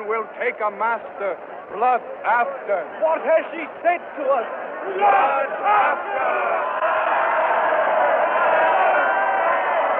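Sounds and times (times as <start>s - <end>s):
speech: 0.1s - 7.3s
crowd in a square shouting: 4.7s - 9.9s.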